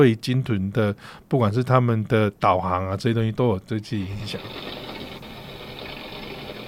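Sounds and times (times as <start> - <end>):
speech: 0.0 - 4.8
underwater ship propeller noise: 4.3 - 6.6.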